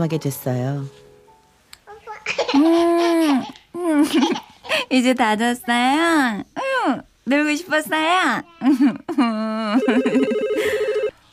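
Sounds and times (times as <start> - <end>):
speech: 0.0 - 1.0, 2.5 - 10.3
laughter: 8.6 - 10.9
telephone ringing with an electronic tone: 9.8 - 11.3.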